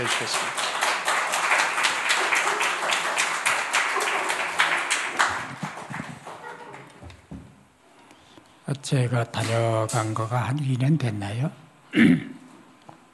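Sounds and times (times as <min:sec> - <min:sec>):
speech: 0:00.0 - 0:00.6, 0:08.8 - 0:12.3
audience applauding: 0:00.0 - 0:07.0.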